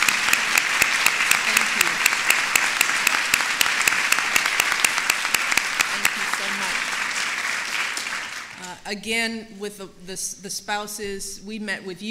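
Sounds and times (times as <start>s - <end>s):
round of applause: 0.0s - 8.7s
speech: 8.9s - 12.0s.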